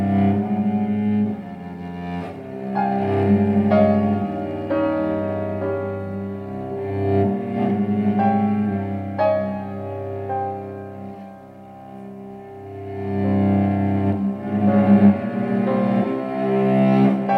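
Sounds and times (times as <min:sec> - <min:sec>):
cello: 0:00.0 - 0:17.3
piano: 0:00.0 - 0:17.3.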